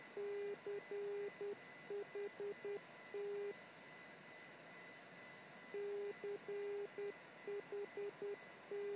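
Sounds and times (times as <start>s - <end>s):
non directional beacon broadcasting callsign in morse code on 277 kHz: 0.2s - 3.5s, 5.8s - 8.9s.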